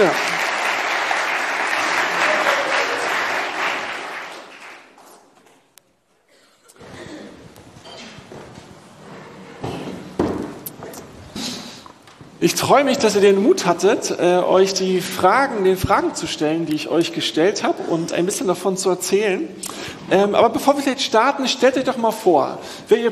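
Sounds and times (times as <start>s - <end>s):
audience applause: 0.0s - 5.2s
scattered footsteps and shuffling in a large room: 5.0s - 12.4s
speech: 12.4s - 23.1s.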